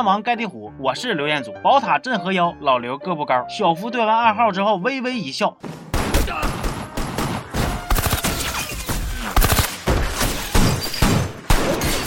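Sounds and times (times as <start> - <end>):
speech: 0.0 - 6.6
rapid gunfire in a shootout from the film Baby Driver: 5.9 - 12.0.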